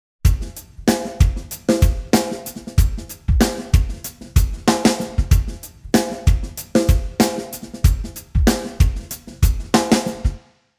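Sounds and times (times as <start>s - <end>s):
drums at 110 BPM: 0.2s - 10.5s.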